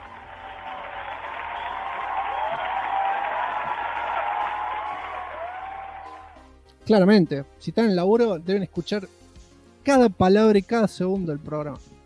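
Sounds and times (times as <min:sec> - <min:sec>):
crowd applause: 0:00.0 - 0:06.4
speech: 0:06.9 - 0:09.2, 0:09.8 - 0:11.9.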